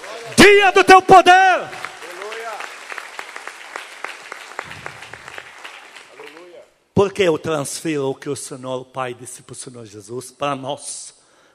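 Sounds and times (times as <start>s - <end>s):
audience applause: 0.0s - 6.6s
speech: 0.5s - 1.7s, 7.0s - 11.2s.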